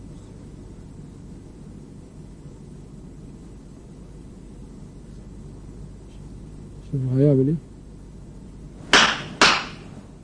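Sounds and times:
speech: 0:06.9 - 0:07.7
slaps on the shoulder given as encouragement: 0:08.9 - 0:09.9.

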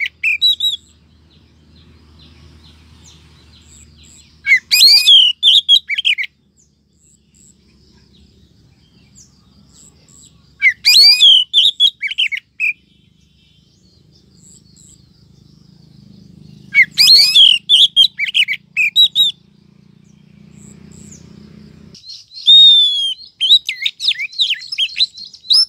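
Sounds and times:
bird chirping and twittering: 0:00.0 - 0:25.6.

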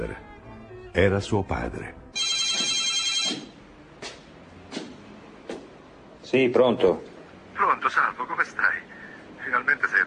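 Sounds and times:
speech: 0:00.0 - 0:00.3, 0:01.0 - 0:02.4, 0:06.3 - 0:08.9, 0:09.5 - 0:10.0
telephone ringing: 0:02.2 - 0:03.6.

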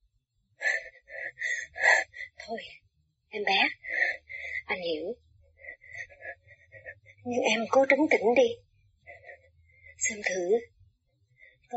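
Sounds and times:
heavy panting breaths: 0:00.6 - 0:02.4, 0:03.8 - 0:04.8, 0:05.4 - 0:07.3, 0:08.9 - 0:10.1
speech: 0:07.6 - 0:08.6.

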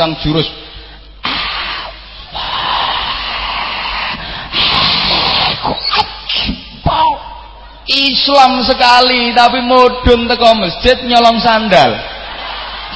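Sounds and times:
speech: 0:00.0 - 0:00.7, 0:08.0 - 0:12.1
voice imitating a worshipper hissing during the takbir of prayer: 0:01.2 - 0:05.8.

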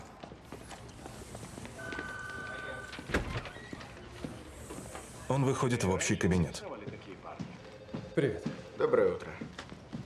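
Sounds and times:
glass door at a police station opening with a mechanical whir: 0:02.8 - 0:04.0
speech: 0:05.3 - 0:06.7, 0:08.2 - 0:09.5.

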